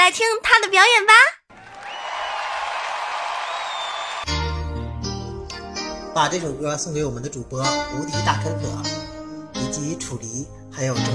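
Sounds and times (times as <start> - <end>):
speech: 0.1 - 1.4, 6.2 - 9.0, 9.6 - 11.1
audience cheering and applause: 1.5 - 4.3.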